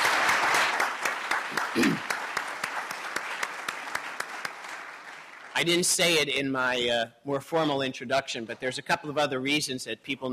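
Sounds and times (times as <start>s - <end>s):
audience applause: 0.0s - 5.8s
speech: 1.8s - 2.1s, 5.6s - 10.3s.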